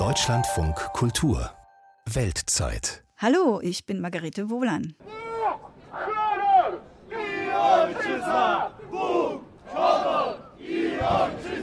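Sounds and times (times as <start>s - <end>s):
speech: 0.2s - 5.2s
crowd chanting slogan at Polish Independence Day march: 5.9s - 11.6s.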